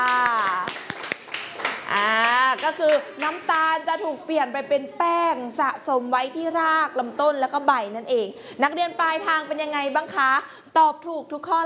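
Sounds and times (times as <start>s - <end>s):
hand clapping in a science lesson: 0.0s - 3.7s
speech: 2.7s - 11.6s.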